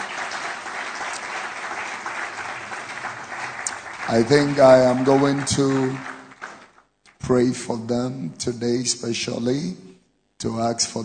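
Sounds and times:
audience clapping: 0.0 - 7.3
speech: 4.1 - 6.1, 7.3 - 11.0.

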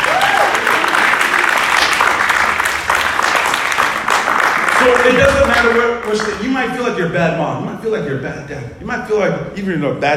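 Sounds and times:
audience applauding: 0.0 - 6.7
speech: 5.1 - 10.1.

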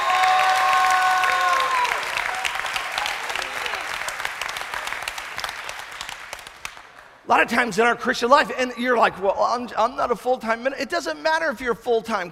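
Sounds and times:
audience hand clapping: 0.0 - 7.2
speech: 7.3 - 12.3.

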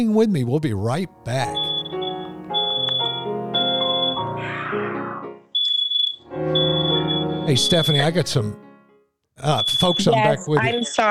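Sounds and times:
speech: 0.0 - 1.7, 7.4 - 8.6, 9.4 - 11.0
music: 0.0 - 5.6, 6.2 - 11.0
smoke alarm beeping: 1.5 - 4.3, 5.6 - 8.2, 9.5 - 11.0.

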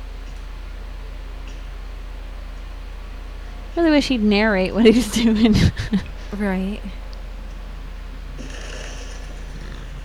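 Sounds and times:
laughter: 3.8 - 7.0
speech: 3.8 - 7.0
deep burp: 8.4 - 10.0.

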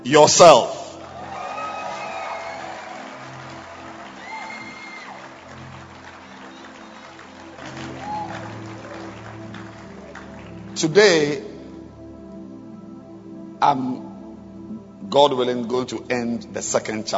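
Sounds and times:
speech: 0.0 - 0.8, 10.8 - 11.5, 13.6 - 14.0, 15.1 - 17.1
crowd of people clapping their hands: 0.9 - 11.0.

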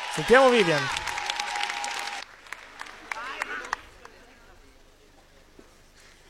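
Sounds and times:
audience applause: 0.0 - 4.4
speech: 0.2 - 1.0.

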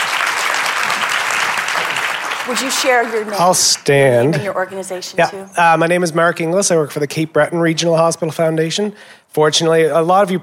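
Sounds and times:
room full of people clapping: 0.0 - 4.1
speech: 2.5 - 10.4.

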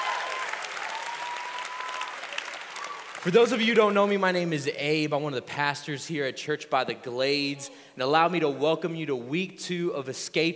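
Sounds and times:
audience applause: 0.0 - 3.7
speech: 3.2 - 10.5.

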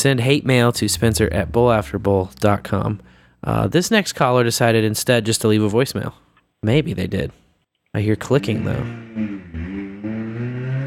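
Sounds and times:
speech: 0.0 - 9.4
car engine revving outside window: 0.8 - 3.2, 8.4 - 10.8.

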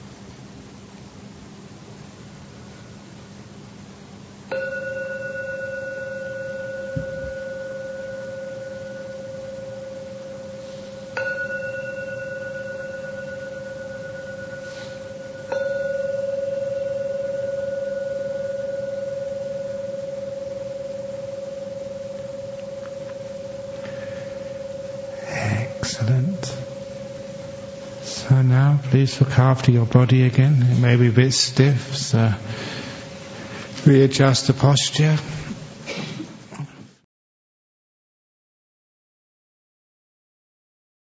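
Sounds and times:
Buddhist gong ringing: 4.5 - 35.2
speech: 25.9 - 26.6, 28.9 - 32.7, 33.8 - 35.4.

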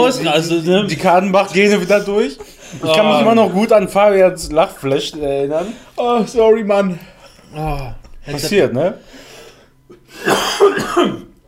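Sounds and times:
speech: 0.0 - 9.2, 10.2 - 11.3
person coughing after swallowing the wrong way: 9.9 - 11.4.

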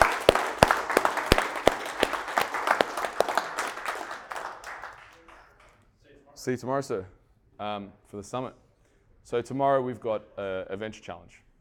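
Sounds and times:
audience applause: 0.0 - 5.7
speech: 6.4 - 8.6, 9.2 - 11.5.

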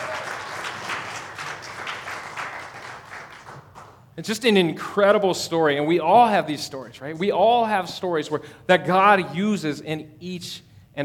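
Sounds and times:
round of applause: 0.0 - 4.1
speech: 4.2 - 11.0.

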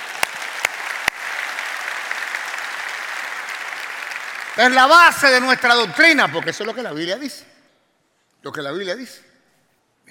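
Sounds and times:
audience applause: 0.0 - 7.2
speech: 4.6 - 7.5, 8.4 - 9.3.

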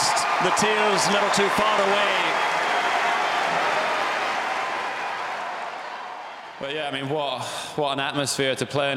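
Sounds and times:
tennis crowd cheering and applauding: 0.0 - 7.1
speech: 0.4 - 2.6, 6.6 - 8.9.

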